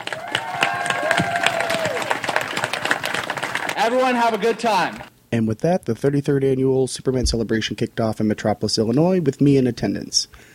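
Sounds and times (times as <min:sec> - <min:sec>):
crowd applauding: 0:00.0 - 0:05.1
speech: 0:03.8 - 0:10.5.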